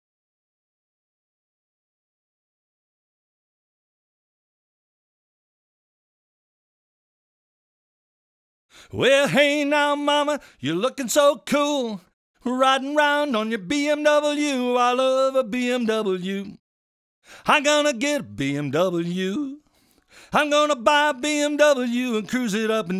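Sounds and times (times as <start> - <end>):
vocals: 8.7 - 16.6, 17.2 - 22.9.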